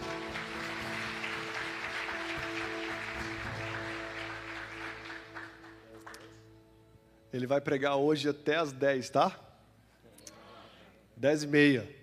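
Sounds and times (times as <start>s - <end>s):
audience applauding: 0.0s - 6.4s
low sustained musical drone: 0.0s - 7.2s
speech: 7.3s - 9.4s, 11.2s - 12.0s.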